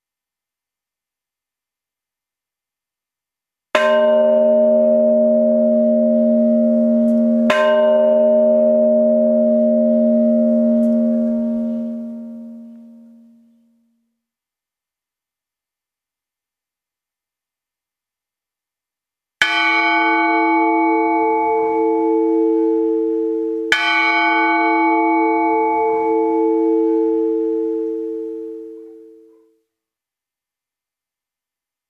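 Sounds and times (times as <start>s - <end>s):
bells ringing: 3.9s - 13.3s, 19.5s - 29.2s.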